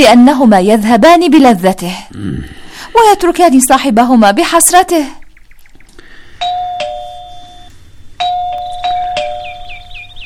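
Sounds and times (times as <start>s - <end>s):
speech: 0.0s - 5.2s
doorbell ringing with a two-tone ding-dong: 6.4s - 9.8s.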